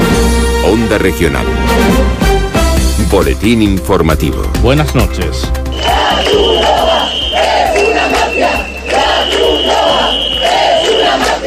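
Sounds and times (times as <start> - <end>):
speech: 0.7 - 2.3, 3.1 - 6.9
crowd of protesters chanting in Ceuta: 5.7 - 11.4
steady high-pitched whistle or alarm tone: 5.7 - 11.4.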